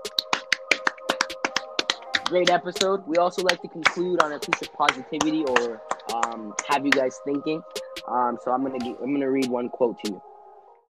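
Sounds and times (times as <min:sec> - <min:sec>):
hosts clapping at episode end: 0:00.0 - 0:07.3
speech: 0:02.3 - 0:10.3.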